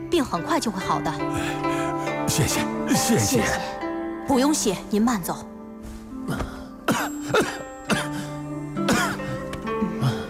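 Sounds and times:
speech: 0.2s - 5.5s, 7.3s - 7.6s
man coughing: 6.3s - 9.4s.

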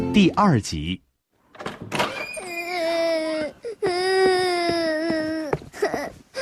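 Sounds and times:
speech: 0.2s - 1.0s
child crying: 2.4s - 6.4s.

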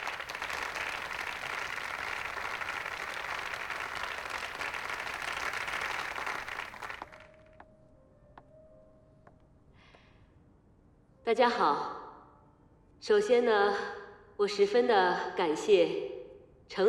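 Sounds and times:
warm audience applause: 0.0s - 7.4s
speech: 11.3s - 12.0s, 13.0s - 16.1s, 16.7s - 16.8s.

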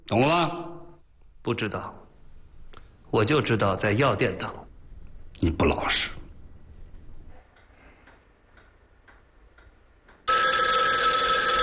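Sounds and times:
speech: 0.1s - 0.6s, 1.4s - 2.0s, 3.1s - 4.6s, 5.4s - 6.2s
telephone ringing: 10.3s - 11.6s.

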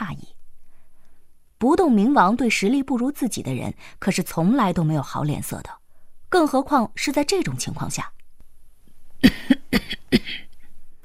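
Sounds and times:
speech: 1.6s - 8.2s, 9.2s - 10.4s
old woman coughing: 9.2s - 10.5s.

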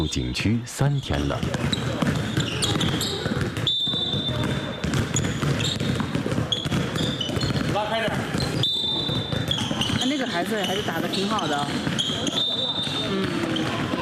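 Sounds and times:
speech: 0.0s - 2.1s, 10.1s - 13.5s
basketball bouncing on a mountain sports ground: 1.3s - 13.9s.

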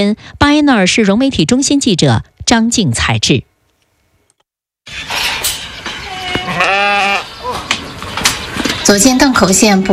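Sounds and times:
speech: 0.0s - 3.5s, 4.9s - 5.3s, 8.9s - 9.9s
sheep bleating in a farm pen: 6.1s - 7.4s.

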